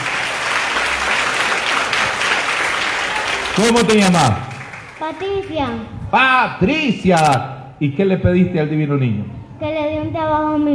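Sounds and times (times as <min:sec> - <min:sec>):
audience applause: 0:00.0 - 0:05.1
speech: 0:03.6 - 0:10.7.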